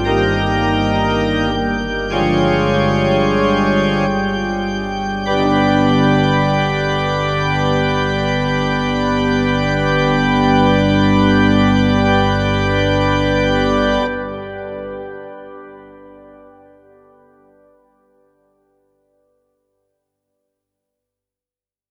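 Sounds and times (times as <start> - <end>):
organ prelude: 0.0 - 17.4.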